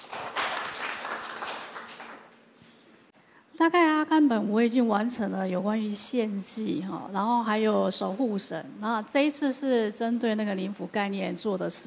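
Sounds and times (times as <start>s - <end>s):
audience applause welcoming a speaker: 0.0s - 2.4s
speech: 3.6s - 11.8s.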